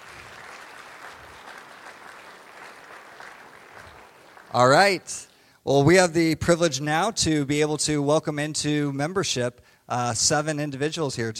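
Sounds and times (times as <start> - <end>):
audience applause: 0.0 - 5.0
speech: 4.5 - 11.3.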